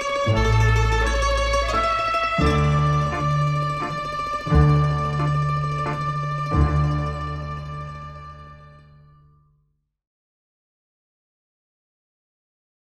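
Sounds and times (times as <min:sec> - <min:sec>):
orchestra and mandolin: 0:00.0 - 0:09.4.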